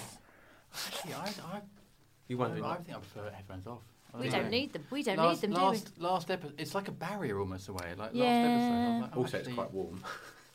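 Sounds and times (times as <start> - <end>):
person blowing nose: 0.0 - 1.4
speech: 1.0 - 10.5.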